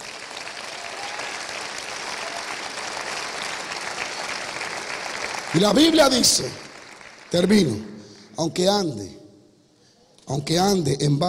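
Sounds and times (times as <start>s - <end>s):
audience applause: 0.0s - 7.8s
speech: 5.5s - 6.6s, 7.3s - 9.2s, 10.3s - 11.2s.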